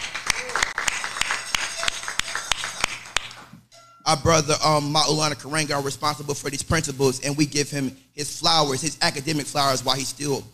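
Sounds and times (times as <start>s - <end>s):
audience hand clap: 0.0s - 3.7s
speech: 4.1s - 10.5s.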